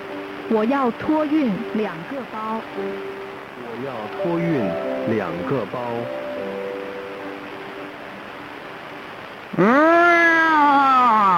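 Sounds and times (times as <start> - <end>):
low steady hiss: 0.0 - 11.3
speech: 0.5 - 6.3, 9.6 - 10.0.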